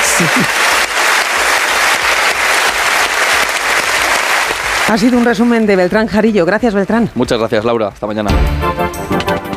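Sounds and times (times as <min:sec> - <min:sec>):
audience ovation applause for an honorary award: 0:00.0 - 0:06.4
speech: 0:00.2 - 0:00.8, 0:04.9 - 0:09.4.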